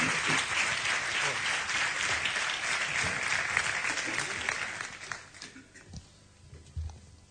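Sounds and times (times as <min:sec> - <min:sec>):
audience applause: 0:00.0 - 0:05.7.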